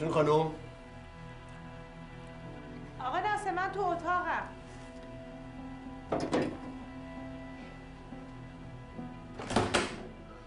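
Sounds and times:
speech: 0.0 - 0.6, 3.4 - 4.6
door being closed in a house: 6.1 - 6.7, 9.4 - 10.1.

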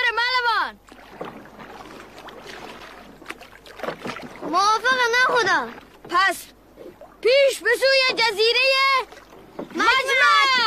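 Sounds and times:
low steady hiss: 0.0 - 10.6
oars rowing a boat through water: 0.0 - 10.6
speech: 5.3 - 6.6, 7.2 - 9.2.

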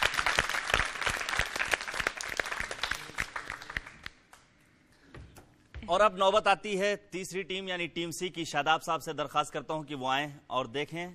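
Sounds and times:
loud applause: 0.0 - 4.1
speech: 5.9 - 11.1.

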